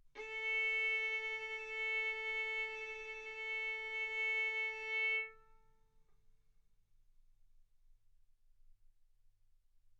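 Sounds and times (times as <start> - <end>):
violin bowed mezzo-forte on the A string, A4 and B4: 0.2 - 5.5.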